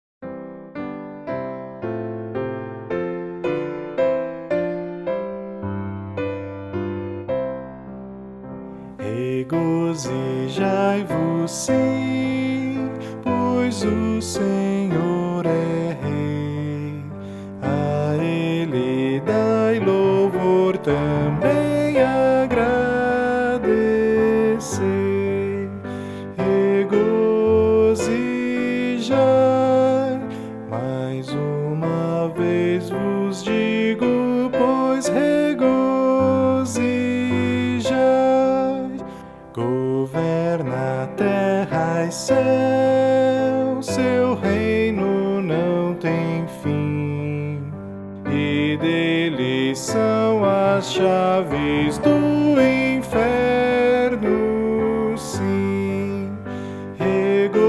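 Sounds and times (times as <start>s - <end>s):
piano: 0.0s - 57.6s
person singing: 8.8s - 57.6s.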